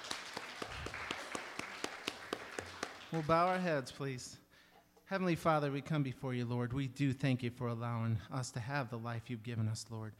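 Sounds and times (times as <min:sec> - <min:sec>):
church congregation clapping hands in praise: 0:00.0 - 0:03.9
speech: 0:03.1 - 0:04.4, 0:05.1 - 0:10.1.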